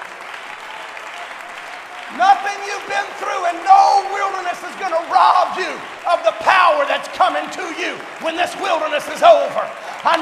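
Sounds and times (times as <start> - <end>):
audience clapping hands: 0.0 - 10.2
speech: 2.1 - 10.2.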